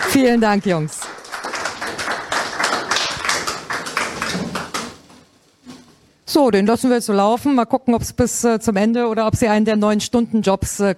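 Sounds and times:
audience applause: 0:00.0 - 0:05.2
speech: 0:00.1 - 0:01.1, 0:06.3 - 0:10.9.

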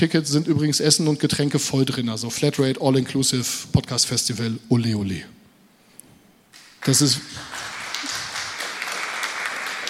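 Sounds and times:
speech: 0:00.0 - 0:05.4, 0:06.8 - 0:07.6
live audience applause at a podcast festival: 0:07.3 - 0:09.8.

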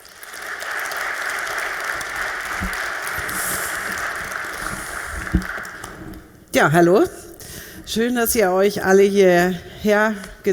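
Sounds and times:
audience applause: 0:00.0 - 0:06.2
speech: 0:05.3 - 0:05.6, 0:06.6 - 0:07.2, 0:07.9 - 0:10.5.

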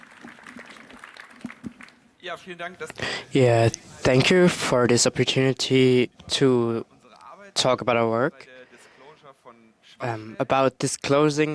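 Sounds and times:
audience applause: 0:00.0 - 0:02.2
speech: 0:02.2 - 0:06.9, 0:07.6 - 0:08.5, 0:10.0 - 0:11.5.

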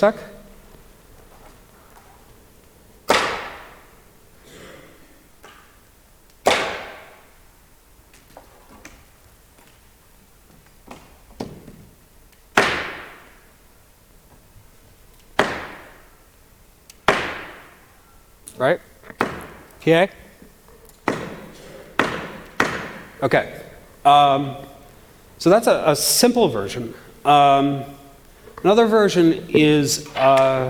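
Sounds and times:
speech: 0:00.0 - 0:00.4, 0:18.6 - 0:18.8, 0:19.9 - 0:20.2, 0:23.2 - 0:24.7, 0:25.4 - 0:28.0, 0:28.6 - 0:30.6
cane tapping echoing in large room: 0:00.0 - 0:04.3, 0:06.4 - 0:07.4, 0:17.0 - 0:18.0, 0:19.0 - 0:30.6.

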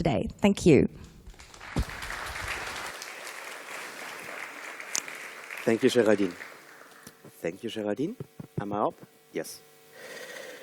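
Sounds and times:
speech: 0:00.0 - 0:01.1, 0:05.6 - 0:06.5, 0:07.4 - 0:10.2
audience applause: 0:01.3 - 0:07.2.

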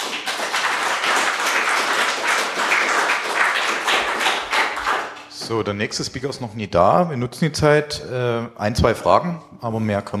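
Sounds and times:
audience applause: 0:00.0 - 0:05.4
speech: 0:05.5 - 0:10.1.

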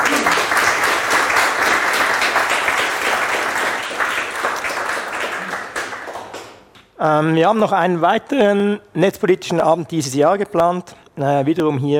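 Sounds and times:
crowd applauding: 0:00.0 - 0:06.7
speech: 0:07.0 - 0:11.9.

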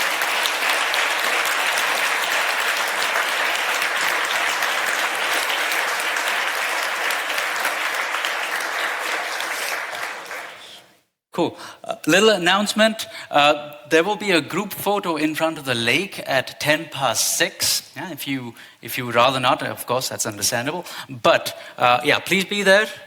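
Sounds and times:
crowd applause: 0:00.0 - 0:10.9
speech: 0:11.4 - 0:23.0.

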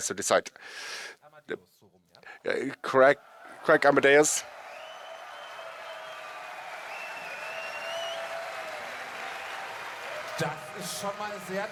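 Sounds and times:
speech: 0:00.0 - 0:04.6, 0:10.4 - 0:11.7
studio audience applause: 0:03.3 - 0:11.7.

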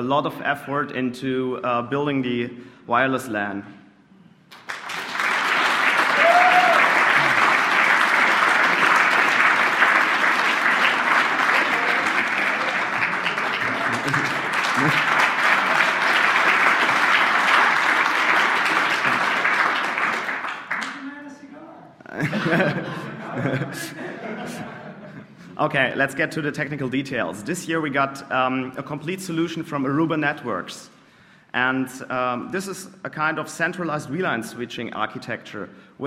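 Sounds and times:
speech: 0:00.0 - 0:03.8, 0:14.8 - 0:15.1, 0:25.6 - 0:30.9, 0:31.6 - 0:36.0
audience applause: 0:04.5 - 0:21.2
laughter: 0:11.4 - 0:16.2, 0:18.9 - 0:19.5, 0:22.0 - 0:25.6.

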